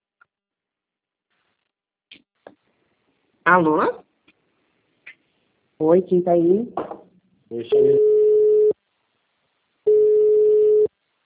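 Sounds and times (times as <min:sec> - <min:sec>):
speech: 0:03.5 - 0:04.0, 0:05.8 - 0:06.8, 0:07.5 - 0:08.0
busy signal after a dropped phone call: 0:07.7 - 0:08.8, 0:09.9 - 0:10.9.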